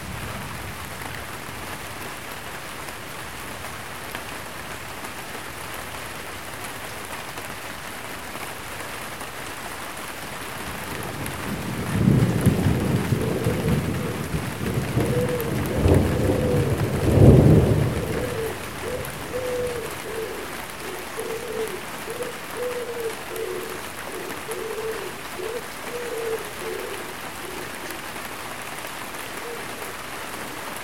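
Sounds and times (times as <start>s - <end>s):
light rain: 0.0s - 30.8s
thunder: 11.0s - 19.5s.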